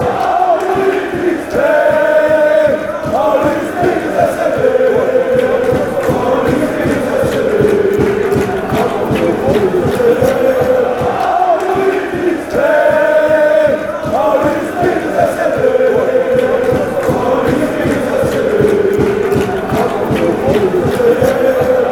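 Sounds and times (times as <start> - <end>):
football crowd chanting: 0.0 - 21.9.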